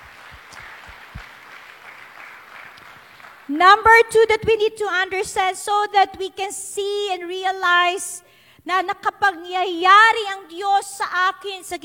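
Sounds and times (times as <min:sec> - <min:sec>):
church congregation clapping during a worship service: 0:00.0 - 0:03.9
speech: 0:03.5 - 0:11.8.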